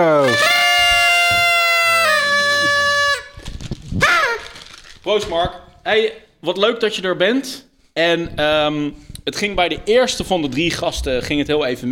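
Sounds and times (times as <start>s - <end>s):
party blowout horn blown: 0.2s - 4.5s
speech: 5.1s - 11.9s.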